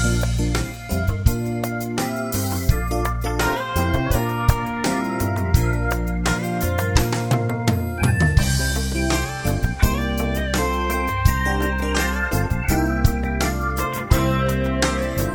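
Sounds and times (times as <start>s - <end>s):
strings in F major: 0.0s - 15.3s.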